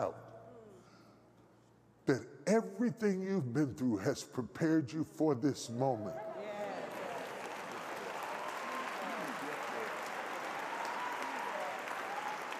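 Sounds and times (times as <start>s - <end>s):
speech: 0.0s - 0.2s, 2.1s - 6.3s
faint voices and scattered cheers: 6.0s - 12.5s
large audience clapping: 6.6s - 12.5s.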